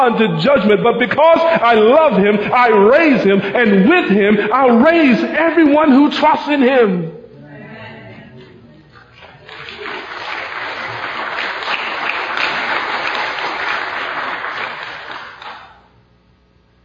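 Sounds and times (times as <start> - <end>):
speech: 0.0 - 7.2
audience applauding: 9.1 - 15.8.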